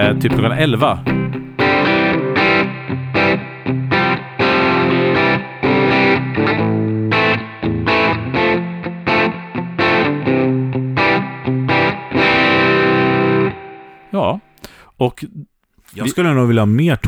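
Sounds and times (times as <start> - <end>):
speech: 0.0 - 1.2, 15.0 - 17.0
electric guitar through an amp with gain raised, crunchy distorted strums: 0.0 - 13.5.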